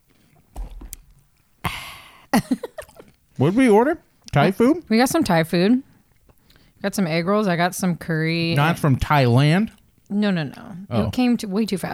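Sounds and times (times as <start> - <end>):
person chewing food near the microphone: 0.0 - 3.4, 4.0 - 4.5, 5.8 - 6.8, 9.7 - 10.1
speech: 2.3 - 2.7, 3.4 - 5.9, 6.8 - 11.9.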